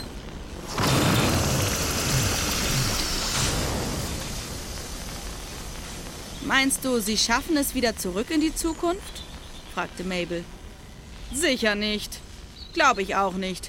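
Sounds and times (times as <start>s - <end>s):
hiss of air being let out: 0.6s - 6.4s
speech: 6.6s - 9.2s, 9.8s - 10.6s, 11.3s - 12.2s, 12.8s - 13.6s.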